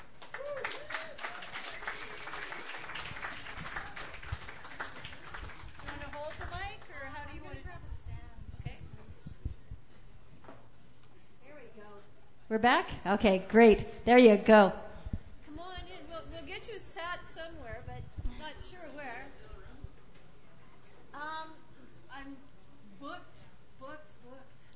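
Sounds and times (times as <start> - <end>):
audience applause welcoming performer: 0.0 - 6.8
voices cheering: 0.3 - 5.1
speech: 12.5 - 14.8.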